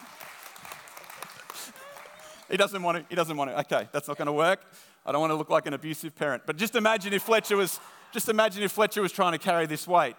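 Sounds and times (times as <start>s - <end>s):
audience clapping: 0.0s - 3.4s
speech: 2.5s - 10.1s.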